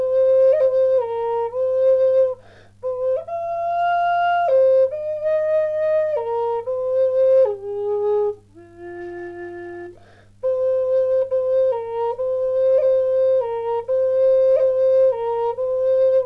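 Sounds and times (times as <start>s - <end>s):
Native American bamboo flute playing in F: 0.0s - 16.2s.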